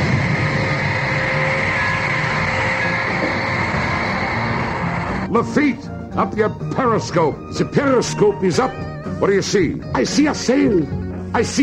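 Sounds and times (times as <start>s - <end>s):
submarine engines running: 0.0s - 5.3s
speech: 5.4s - 11.6s.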